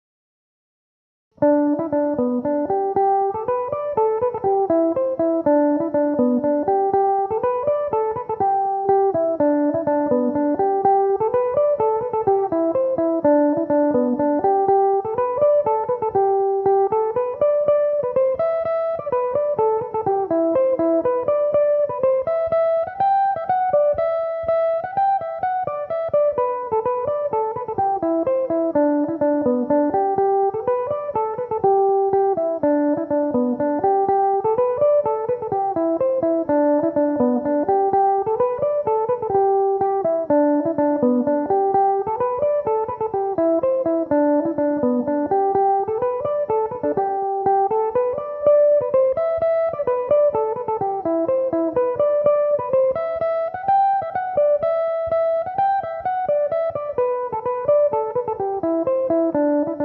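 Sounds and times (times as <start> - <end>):
Irish mandolin in G major: 1.4 - 59.8.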